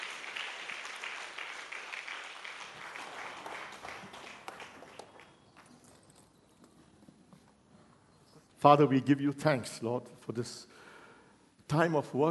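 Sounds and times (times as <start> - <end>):
congregation applauding to welcome a pastor at a church service: 0.0 - 6.0
speech: 8.6 - 10.8, 11.7 - 12.2.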